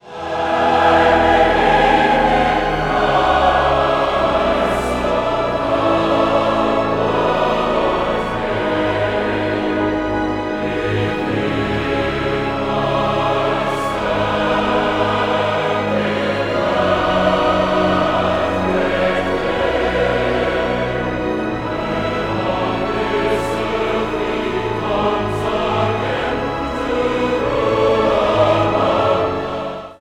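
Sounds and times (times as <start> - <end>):
choir singing: 0.0 - 29.9.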